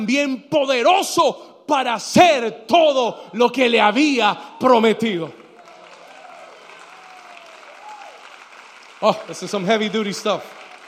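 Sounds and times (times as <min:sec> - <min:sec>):
speech: 0:00.0 - 0:05.4, 0:09.0 - 0:10.6
audience applause: 0:05.4 - 0:10.8.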